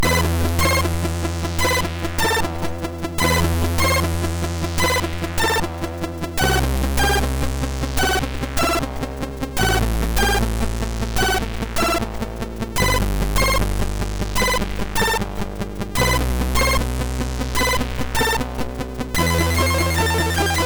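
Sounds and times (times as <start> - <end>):
MOS6581R3 SID chip music remix: 0.0 - 20.6.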